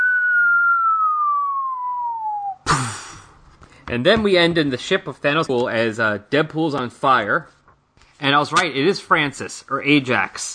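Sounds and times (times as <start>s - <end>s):
cartoon falling whistle: 0.0s - 2.7s
speech: 3.9s - 7.6s, 8.2s - 10.5s.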